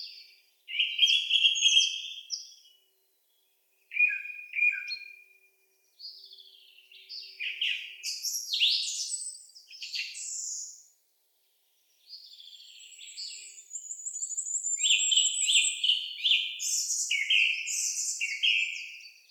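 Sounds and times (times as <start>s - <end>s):
Turdus philomelos song thrush singing: 0.0s - 19.3s.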